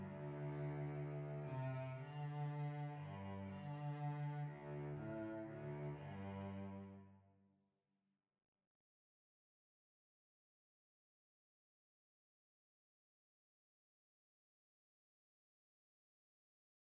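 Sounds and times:
violoncello: 0.0s - 7.4s.

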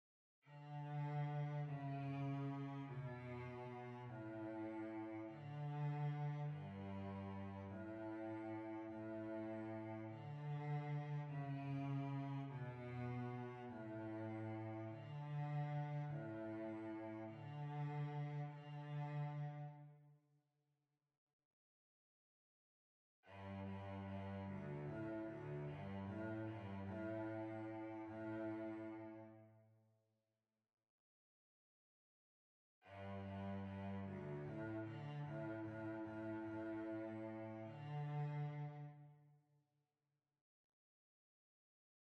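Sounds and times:
violoncello: 0.5s - 20.0s, 23.2s - 29.5s, 32.8s - 39.2s.

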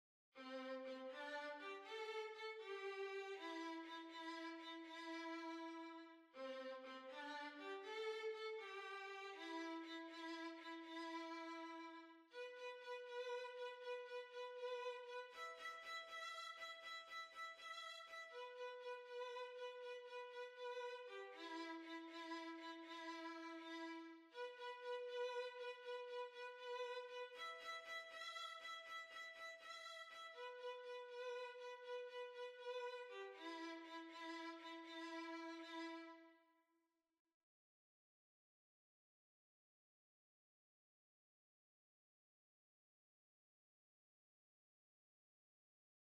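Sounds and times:
violin: 0.4s - 36.4s.

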